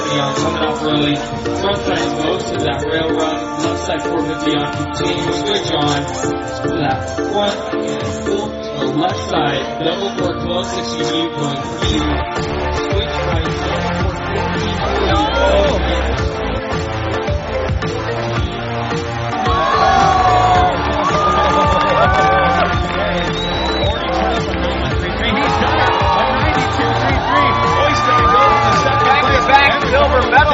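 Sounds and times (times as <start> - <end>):
speech: 0.1 - 12.7
crowd cheering at a freestyle competition: 12.4 - 30.5.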